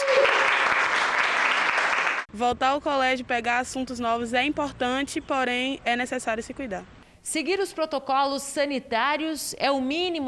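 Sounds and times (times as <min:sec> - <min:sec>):
students applauding teacher: 0:00.0 - 0:02.3
speech: 0:02.3 - 0:10.2.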